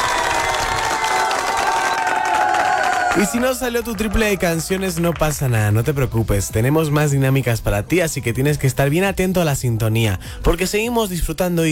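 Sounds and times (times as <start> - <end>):
crowd applause: 0.0 - 5.6
speech: 3.2 - 11.7.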